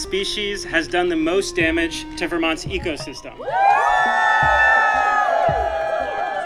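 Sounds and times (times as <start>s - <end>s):
speech: 0.1s - 4.6s
audience cheering for a vote: 3.4s - 6.4s.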